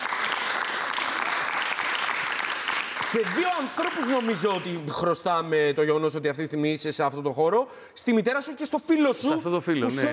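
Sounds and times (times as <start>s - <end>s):
crowd clapping: 0.0s - 5.1s
speech: 3.1s - 10.1s.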